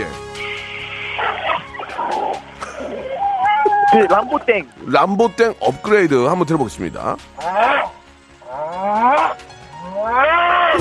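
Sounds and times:
voice imitating supermarket underground parking garage: 0:01.2 - 0:04.6, 0:07.4 - 0:10.7
speech: 0:03.9 - 0:07.9.

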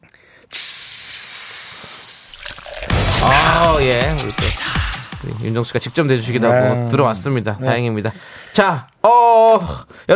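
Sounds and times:
speech: 0:00.5 - 0:00.9, 0:03.2 - 0:10.1
cider soda fizzing: 0:00.6 - 0:06.4.

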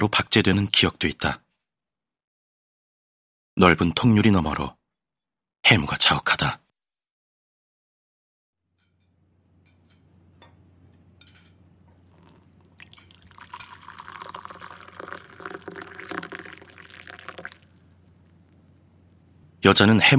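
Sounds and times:
speech: 0:00.0 - 0:01.4, 0:03.6 - 0:04.8, 0:05.6 - 0:06.6, 0:19.6 - 0:20.1
warm water pouring into citron syrup: 0:12.1 - 0:18.4.

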